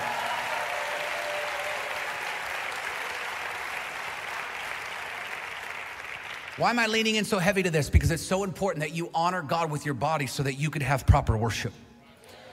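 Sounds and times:
church congregation applauding: 0:00.0 - 0:07.4
speech: 0:06.6 - 0:11.8.

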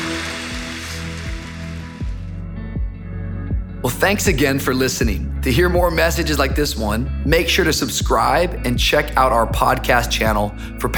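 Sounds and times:
church audience applause: 0:00.0 - 0:02.1
speech: 0:03.8 - 0:10.9.

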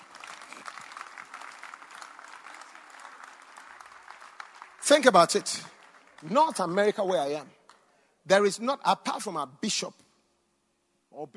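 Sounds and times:
audience clapping: 0:00.0 - 0:07.9
speech: 0:04.9 - 0:07.6, 0:08.2 - 0:10.0.

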